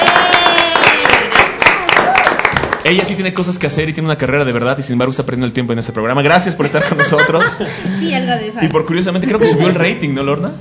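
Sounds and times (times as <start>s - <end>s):
audience applause: 0.0s - 3.1s
speech: 2.8s - 10.5s
laughter: 6.6s - 8.2s.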